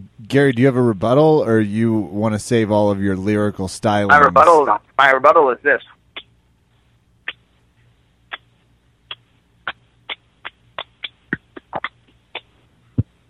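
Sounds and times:
faint hum: 0.0s - 13.2s
speech: 0.3s - 5.9s
lone person clapping slowly: 9.1s - 12.6s.

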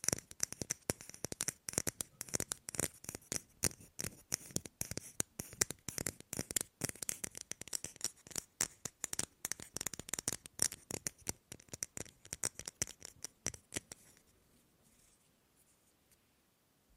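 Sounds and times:
rapid tapping on objects: 0.0s - 14.2s
faint low hum: 11.4s - 16.9s.

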